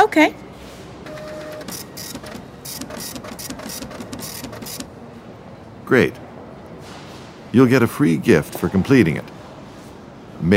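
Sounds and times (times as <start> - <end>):
speech: 0.0 - 0.4, 5.9 - 6.2, 7.5 - 9.4, 10.4 - 10.5
printer printing a bill: 1.0 - 5.0.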